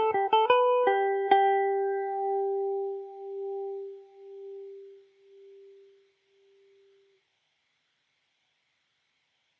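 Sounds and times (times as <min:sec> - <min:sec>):
Irish mandolin mandobird playing G major: 0:00.0 - 0:07.0.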